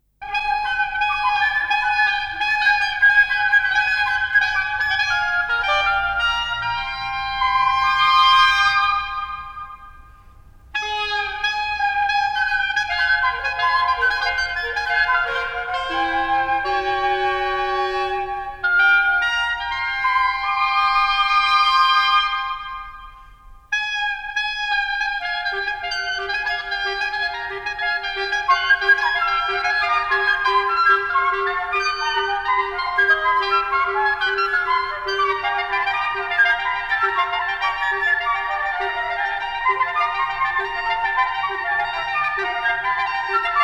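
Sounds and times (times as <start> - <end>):
wind quintet: 0.2 - 43.6.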